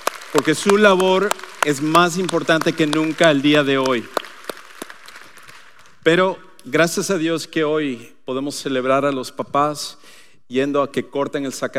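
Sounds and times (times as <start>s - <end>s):
scattered handclaps: 0.0s - 6.0s
speech: 0.3s - 4.2s, 6.0s - 11.7s.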